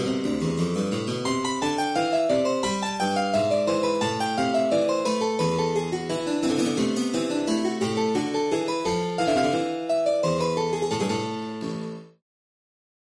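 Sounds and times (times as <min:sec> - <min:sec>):
German harpsichord: 0:00.0 - 0:12.2.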